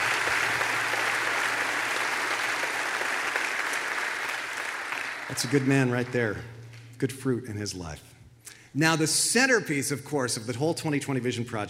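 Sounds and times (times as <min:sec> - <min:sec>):
audience applauding: 0:00.0 - 0:06.9
speech: 0:05.3 - 0:08.1, 0:08.7 - 0:11.6.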